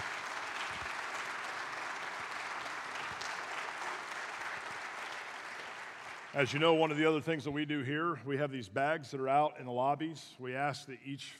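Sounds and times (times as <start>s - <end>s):
audience round of applause: 0.0s - 6.8s
speech: 6.3s - 11.3s.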